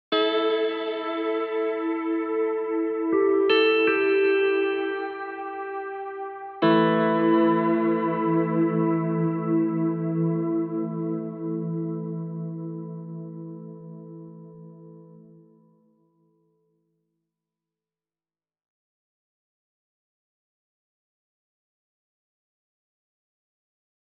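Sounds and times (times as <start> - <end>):
guitar: 0.0 - 16.0.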